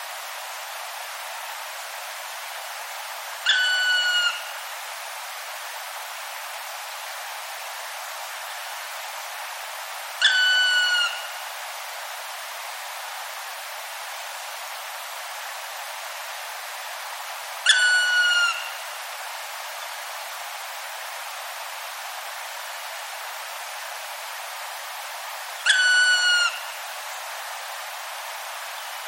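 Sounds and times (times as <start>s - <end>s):
faint hiss: 0.0s - 29.0s
Black Woodpecker call: 3.4s - 4.5s, 10.2s - 11.3s, 17.6s - 18.8s, 25.6s - 26.8s.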